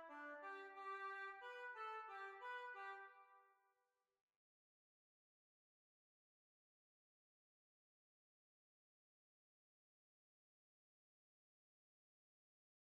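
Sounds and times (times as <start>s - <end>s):
hornpipe tune: 0.0s - 3.2s.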